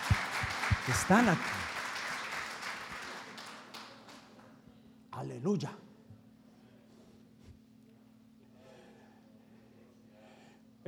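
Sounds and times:
audience applause: 0.0 - 4.4
speech: 0.9 - 1.6, 5.4 - 5.8.

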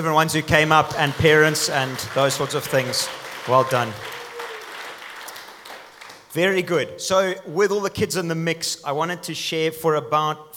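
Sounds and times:
speech: 0.0 - 4.2, 6.3 - 10.5
audience applause: 0.5 - 6.4.

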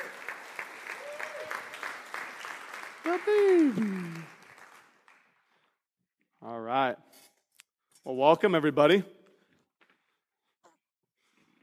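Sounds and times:
audience applause at a church birthday gathering: 0.0 - 5.3
speech: 3.1 - 4.2, 8.2 - 9.2.

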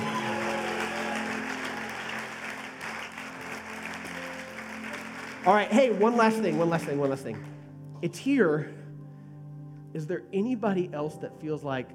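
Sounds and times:
audience applauding: 0.0 - 7.7
speech: 5.4 - 8.8, 10.0 - 11.9.

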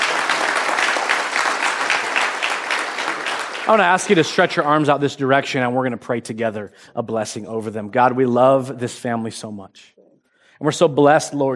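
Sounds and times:
audience clapping: 0.0 - 4.6
speech: 3.7 - 10.0, 10.6 - 11.5.

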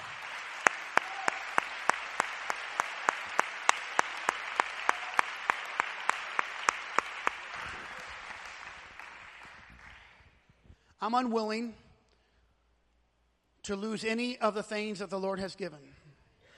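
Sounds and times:
audience clapping hands: 0.0 - 10.4
speech: 11.0 - 11.8, 13.7 - 16.0.

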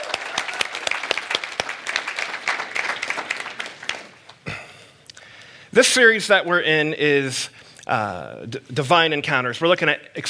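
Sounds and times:
church congregation applauding: 0.0 - 4.6
speech: 5.7 - 10.2.

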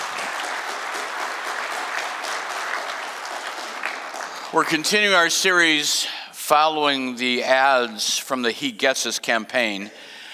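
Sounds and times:
church congregation clapping hands during a morning service: 0.0 - 6.0
speech: 4.5 - 10.1.

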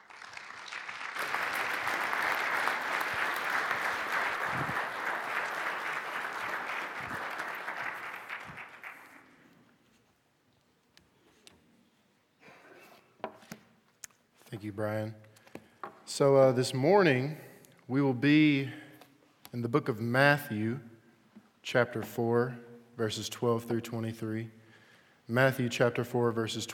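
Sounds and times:
audience applause: 0.0 - 9.4
speech: 14.6 - 15.3, 16.2 - 18.8, 19.6 - 20.9, 21.6 - 24.6, 25.3 - 26.7.

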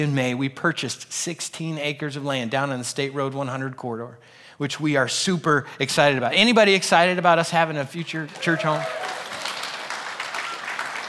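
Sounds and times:
speech: 0.0 - 9.2
group clapping: 8.1 - 11.0.

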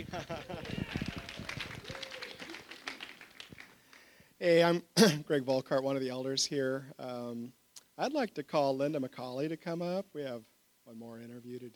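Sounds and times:
speech: 0.0 - 0.8, 4.4 - 11.7
laughter: 0.0 - 3.0
light applause from audience: 0.0 - 4.2.

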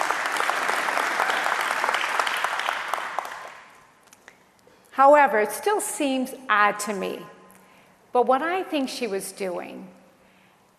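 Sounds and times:
crowd clapping: 0.0 - 3.9
speech: 5.0 - 7.4, 8.2 - 10.0.

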